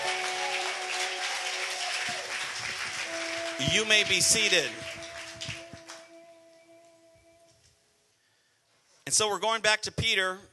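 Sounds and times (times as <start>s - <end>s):
audience hand clapping: 0.0s - 6.4s
speech: 3.6s - 4.8s, 9.1s - 10.5s.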